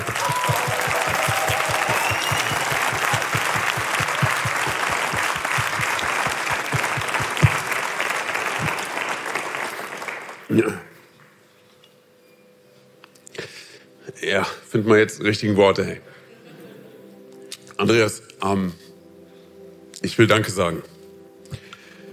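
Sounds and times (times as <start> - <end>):
applause: 0.0 - 10.6
speech: 10.6 - 10.8, 14.3 - 16.1, 17.8 - 18.8, 20.0 - 20.9.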